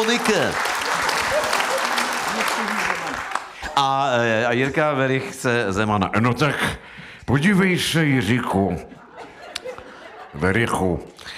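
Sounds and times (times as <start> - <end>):
speech: 0.0 - 0.7, 2.4 - 3.0, 3.8 - 9.0, 10.3 - 11.3
audience applause: 0.0 - 3.8
laughter: 8.8 - 11.1.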